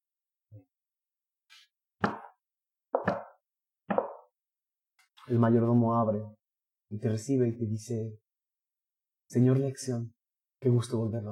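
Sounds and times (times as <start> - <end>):
knocking on a house door: 3.0 - 4.2
speech: 5.3 - 8.2, 9.3 - 11.3.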